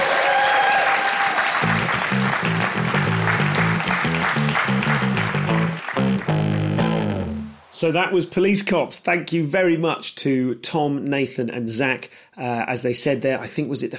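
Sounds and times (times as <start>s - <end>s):
audience applause: 0.0s - 7.7s
speech: 7.8s - 13.9s.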